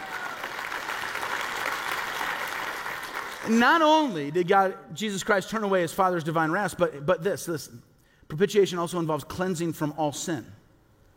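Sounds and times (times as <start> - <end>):
audience clapping: 0.0 - 3.6
speech: 3.4 - 10.6.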